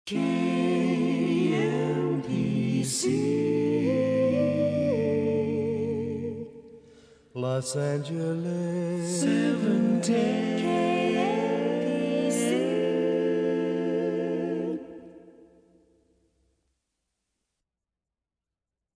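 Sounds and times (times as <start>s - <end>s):
slow a cappella singing: 0.1s - 6.7s, 7.4s - 15.4s.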